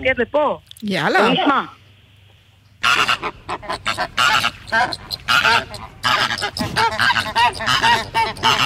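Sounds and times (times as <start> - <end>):
speech: 0.0 - 1.8, 3.2 - 8.6
flock of flamingos honking and gabbling: 2.8 - 8.6.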